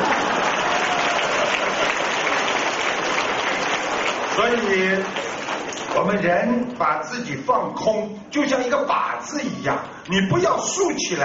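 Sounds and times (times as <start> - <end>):
audience applause: 0.0 - 6.2
speech: 4.4 - 5.2, 6.0 - 11.2.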